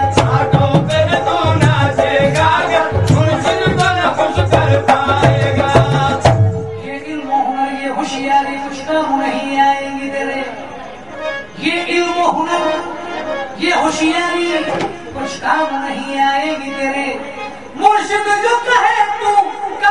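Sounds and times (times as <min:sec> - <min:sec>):
village sufi music in India: 0:00.0 - 0:19.8.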